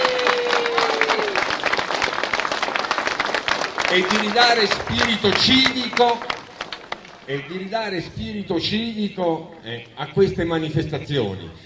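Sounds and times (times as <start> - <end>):
applause for a local festival's organising committee: 0.0 - 7.6
speech: 3.9 - 6.3, 7.3 - 11.6.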